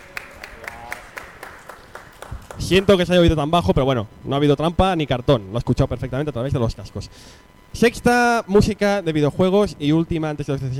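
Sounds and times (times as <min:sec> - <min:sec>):
hands clapping: 0:00.0 - 0:03.0
faint hum: 0:00.0 - 0:10.7
speech: 0:02.7 - 0:10.7.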